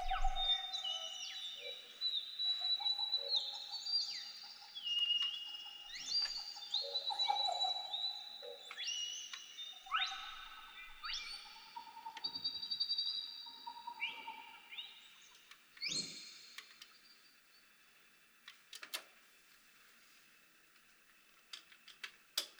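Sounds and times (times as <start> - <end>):
birds dawn chorus: 0.0 - 17.3.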